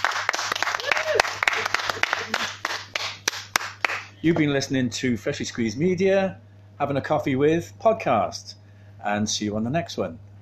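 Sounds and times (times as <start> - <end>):
round of applause: 0.0 - 4.2
speech: 4.2 - 10.3.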